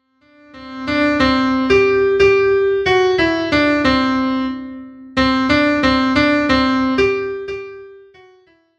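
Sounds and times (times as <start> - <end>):
midi music: 0.6 - 7.4.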